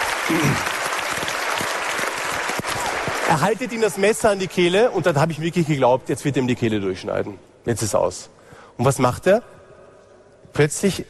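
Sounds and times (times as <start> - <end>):
audience applause: 0.0 - 4.0
speech: 0.3 - 0.8, 3.3 - 9.6, 10.5 - 11.0.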